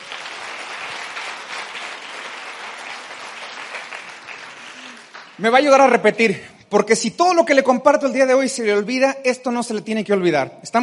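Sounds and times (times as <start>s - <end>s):
audience applause: 0.0s - 5.6s
speech: 5.4s - 10.8s.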